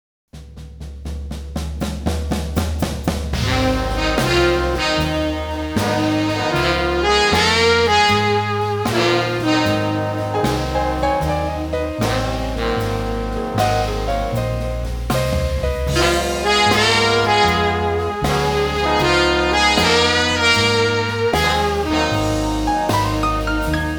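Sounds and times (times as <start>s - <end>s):
big band blues: 1.1s - 23.9s.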